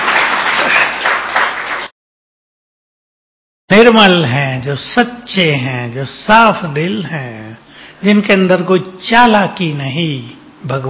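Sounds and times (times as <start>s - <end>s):
audience applause for the mothers: 0.0s - 1.9s
speech: 3.7s - 7.4s, 8.0s - 10.8s.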